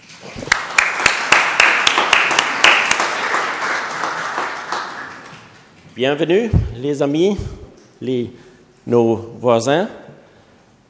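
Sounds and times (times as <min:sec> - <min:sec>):
audience applause in church: 0:00.4 - 0:05.6
speech: 0:06.0 - 0:10.0.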